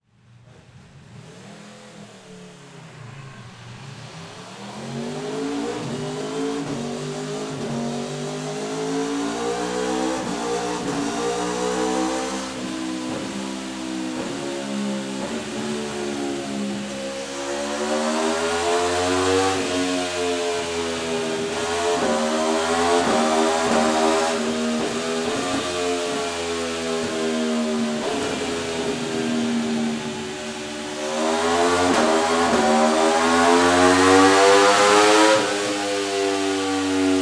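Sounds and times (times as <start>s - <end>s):
Aprilia RSV4 motorcycle fast departure: 0.2s - 37.2s.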